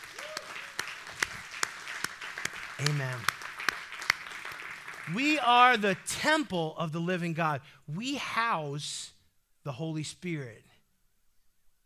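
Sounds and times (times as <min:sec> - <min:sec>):
audience hand clapping: 0:00.0 - 0:06.0
speech: 0:02.8 - 0:03.4, 0:05.1 - 0:10.7.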